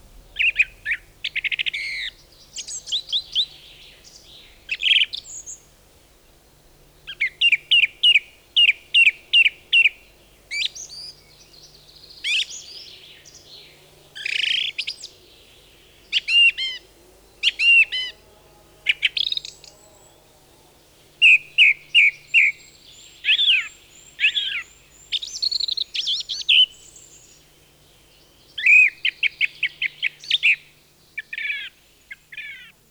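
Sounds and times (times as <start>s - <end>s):
low hum: 0.0s - 7.4s
song thrush singing: 0.0s - 18.2s, 18.9s - 32.8s.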